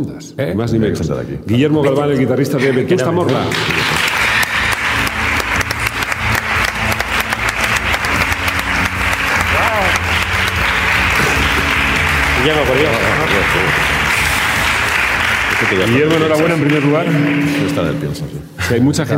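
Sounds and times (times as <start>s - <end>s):
speech: 0.0s - 4.2s, 12.4s - 14.0s, 15.6s - 19.1s
audience applause: 3.2s - 18.2s.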